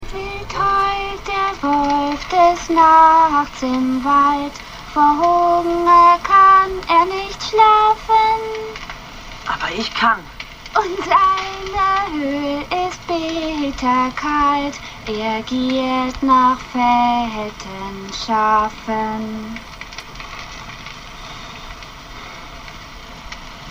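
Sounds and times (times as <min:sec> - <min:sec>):
person singing: 0:00.0 - 0:08.8, 0:10.8 - 0:19.6.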